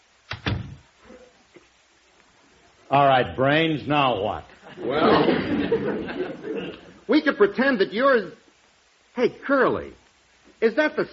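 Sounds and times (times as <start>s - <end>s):
door being shut: 0.3s - 0.8s
speech: 2.9s - 8.4s, 9.2s - 10.0s, 10.6s - 11.1s
laughter: 4.6s - 7.0s.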